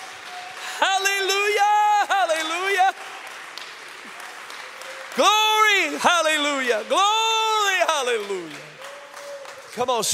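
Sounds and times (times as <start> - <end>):
crowd audience clapping hands: 0.0 - 10.1
speech: 5.2 - 7.2, 9.8 - 10.1.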